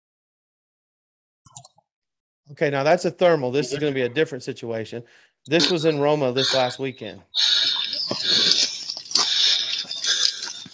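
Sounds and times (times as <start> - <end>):
speech: 2.5 - 7.5
heavy breathing after climbing: 5.0 - 5.4, 7.4 - 10.7.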